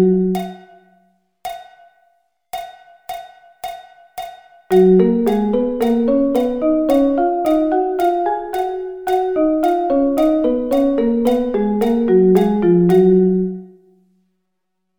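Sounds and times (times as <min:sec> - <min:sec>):
musical thirds: 0:04.7 - 0:13.8.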